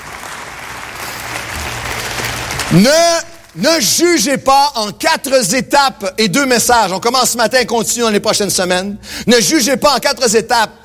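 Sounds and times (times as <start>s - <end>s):
audience applause: 0.0s - 3.6s
speech: 2.7s - 10.8s.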